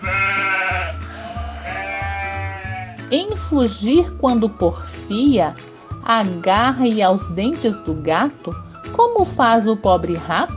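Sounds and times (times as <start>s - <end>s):
sheep bleating: 0.0s - 3.1s
speech: 3.1s - 10.5s.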